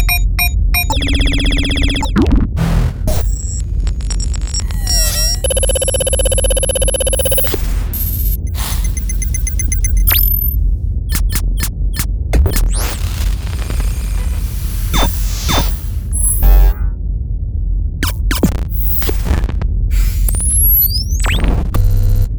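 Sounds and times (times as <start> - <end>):
futuristic user interface sound effects: 0.0 - 17.0, 18.0 - 22.3.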